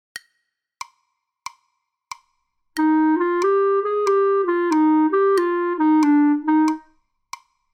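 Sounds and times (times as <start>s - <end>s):
jazz clarinet: 2.8s - 6.9s.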